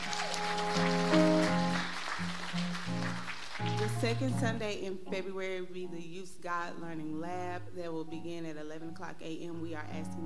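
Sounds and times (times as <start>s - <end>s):
audience applauding: 0.0s - 4.5s
sustained keyboard or organ chords: 0.0s - 6.0s
speech: 0.8s - 1.2s, 4.0s - 10.2s.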